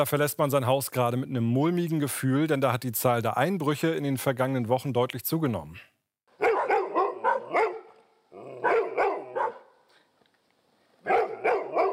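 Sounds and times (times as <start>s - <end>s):
speech: 0.0s - 5.9s
dogs barking: 6.4s - 9.8s, 11.0s - 11.9s.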